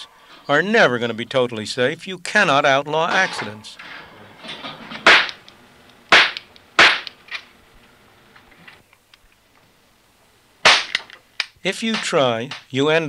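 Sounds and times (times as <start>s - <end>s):
speech: 0.5s - 4.0s, 11.6s - 13.0s
toy gun firing: 5.0s - 5.4s, 6.1s - 7.2s, 10.6s - 12.7s.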